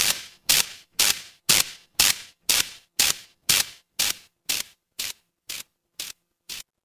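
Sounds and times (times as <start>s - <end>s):
fire electric spark: 0.0s - 6.7s.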